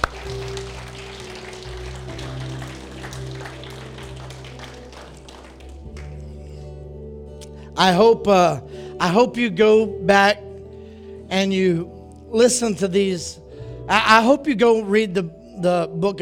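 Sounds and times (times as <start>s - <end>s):
audience applause: 0.0s - 6.2s
sustained low keyboard chord: 0.0s - 16.2s
speech: 7.8s - 10.4s, 11.3s - 16.2s.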